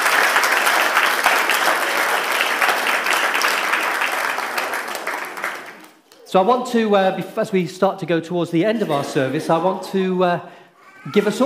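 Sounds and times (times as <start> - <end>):
audience applause: 0.0 - 6.2
speech: 6.3 - 11.4.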